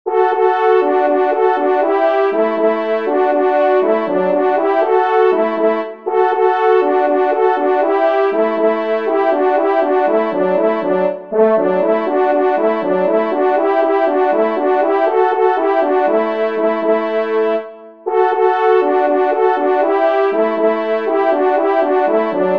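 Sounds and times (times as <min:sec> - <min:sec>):
hunting horns duet: 0:00.1 - 0:22.5.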